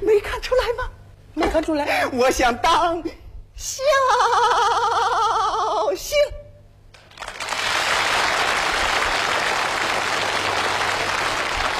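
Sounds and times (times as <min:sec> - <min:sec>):
speech: 0:01.6 - 0:06.3
audience applause: 0:07.0 - 0:11.7.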